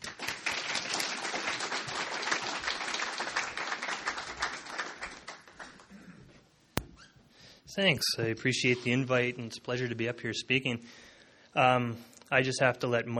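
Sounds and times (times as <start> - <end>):
audience applause: 0.0 - 5.4
speech: 7.8 - 11.0, 11.6 - 13.1.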